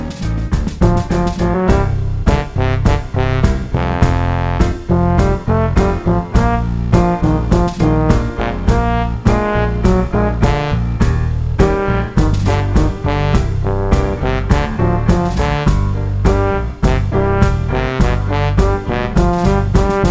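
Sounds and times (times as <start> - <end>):
trombone: 0.2 - 20.0.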